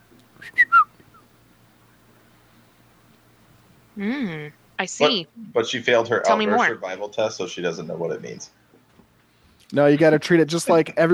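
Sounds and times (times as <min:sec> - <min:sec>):
person whistling an imitation of a bird tweeting: 0:00.4 - 0:00.9
speech: 0:04.0 - 0:08.6, 0:09.7 - 0:11.1.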